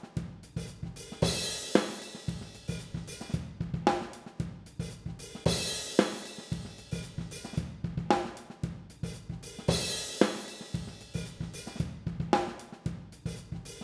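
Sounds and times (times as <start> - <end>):
drum kit recorded with stereo overhead microphones: 0.0 - 13.8.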